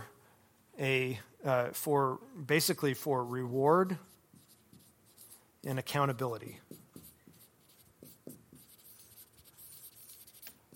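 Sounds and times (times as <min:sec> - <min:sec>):
speech: 0:00.8 - 0:04.1, 0:05.6 - 0:06.7
pen scratching quickly across paper in fast handwriting: 0:04.0 - 0:05.4, 0:06.4 - 0:10.7.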